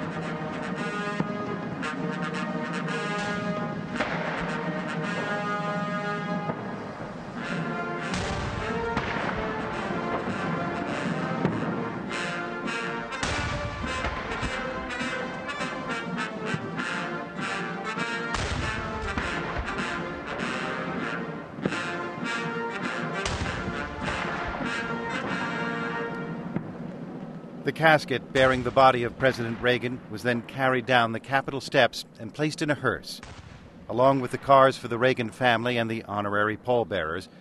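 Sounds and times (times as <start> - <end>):
brass band playing a stately tune: 0.0 - 26.7
cannon shots of a 21-gun salute: 2.9 - 6.8, 7.4 - 26.8, 27.8 - 31.0, 33.2 - 35.0
speech: 27.8 - 33.3, 33.9 - 37.3.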